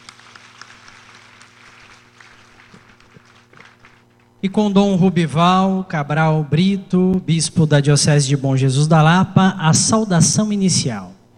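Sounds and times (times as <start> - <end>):
audience applause: 0.0 - 4.2
speech: 4.4 - 11.2.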